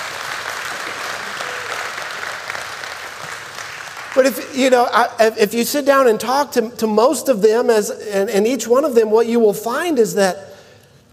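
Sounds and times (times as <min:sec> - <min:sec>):
people clapping hands: 0:00.0 - 0:04.6
speech: 0:04.2 - 0:10.5.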